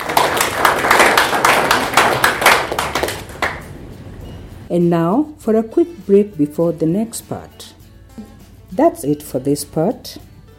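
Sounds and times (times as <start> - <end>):
clapping: 0.0 - 3.7
speech: 4.7 - 7.8, 8.8 - 10.3.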